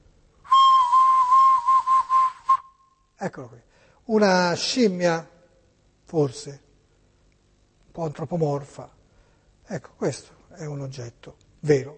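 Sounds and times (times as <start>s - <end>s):
ancient Maya whistle blown: 0.5s - 3.0s
speech: 3.2s - 5.3s, 6.1s - 6.6s, 8.0s - 9.0s, 9.7s - 11.9s.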